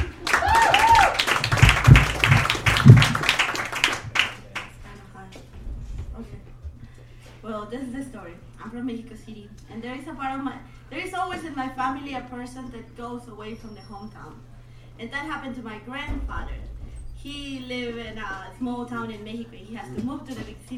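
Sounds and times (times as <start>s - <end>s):
audience applause: 0.0s - 4.8s
speech: 8.1s - 20.7s.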